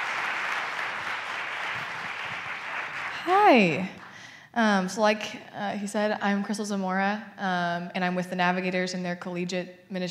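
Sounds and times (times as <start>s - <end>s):
audience clapping to welcome missionaries: 0.0s - 4.1s
speech: 3.2s - 4.0s, 4.6s - 10.1s.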